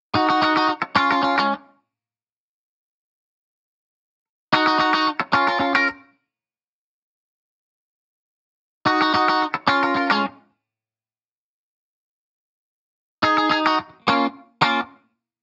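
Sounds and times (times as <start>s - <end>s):
1970s-style guitars: 0.1s - 1.8s, 4.5s - 6.2s, 8.8s - 10.6s, 13.2s - 15.1s.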